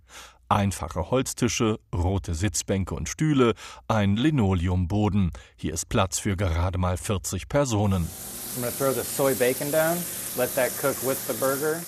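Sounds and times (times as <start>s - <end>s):
speech: 0.5s - 11.8s
soy bacon and a burger sizzling in a pan: 8.0s - 11.8s.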